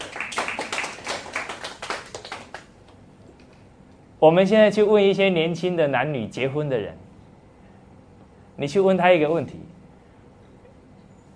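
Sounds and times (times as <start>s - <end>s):
applause: 0.0s - 2.8s
speech: 4.2s - 7.0s, 8.6s - 9.8s.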